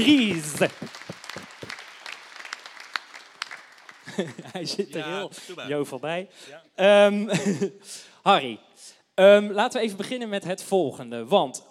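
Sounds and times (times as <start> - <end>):
speech: 0.0 - 1.0, 4.2 - 11.6
audience applause: 0.0 - 4.8
laughter: 4.0 - 5.8, 7.2 - 7.8.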